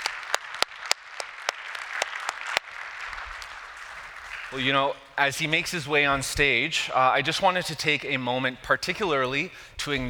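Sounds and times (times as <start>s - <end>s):
audience applause: 0.0s - 5.0s
speech: 4.5s - 10.0s.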